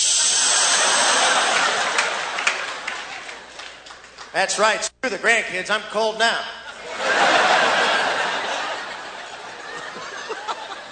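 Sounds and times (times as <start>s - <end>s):
voice imitating aerosol can spraying: 0.0s - 0.9s
laughter: 0.4s - 3.8s, 6.6s - 10.9s
speech: 4.4s - 7.7s.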